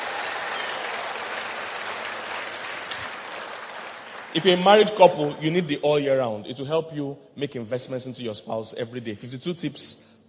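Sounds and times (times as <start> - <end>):
audience clapping: 0.0 - 5.6
speech: 4.3 - 10.2.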